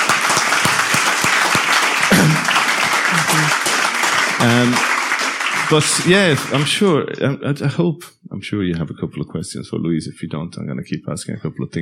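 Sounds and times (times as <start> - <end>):
brief voices and cheers: 0.0 - 6.8
audience loud steady round of applause: 0.0 - 7.0
speech: 4.4 - 4.9, 5.7 - 11.8.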